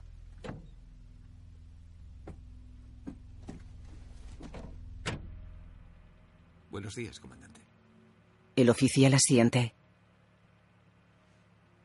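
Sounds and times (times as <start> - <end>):
low steady hum: 0.0 - 11.8
car rear door opening with metallic clicks and knocks: 2.2 - 3.7, 4.4 - 5.3
speech: 6.8 - 7.7, 8.6 - 9.8.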